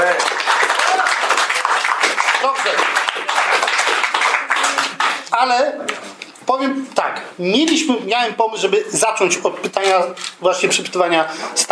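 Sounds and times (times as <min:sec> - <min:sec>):
audience applause: 0:00.0 - 0:05.3
speech: 0:05.4 - 0:05.9, 0:06.6 - 0:11.7.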